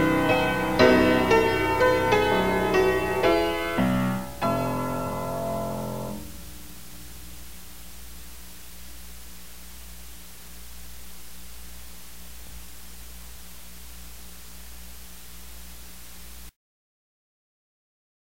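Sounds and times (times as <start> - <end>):
piano: 0.0 - 7.4.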